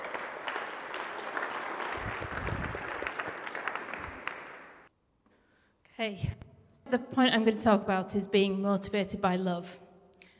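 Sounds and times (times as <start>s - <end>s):
audience applause: 0.0s - 4.9s
speech: 6.0s - 9.8s.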